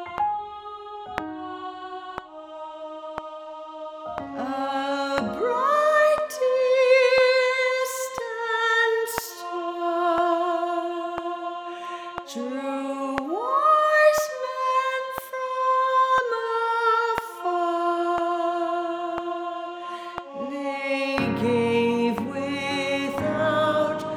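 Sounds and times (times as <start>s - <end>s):
soprano singing: 0.0s - 24.1s.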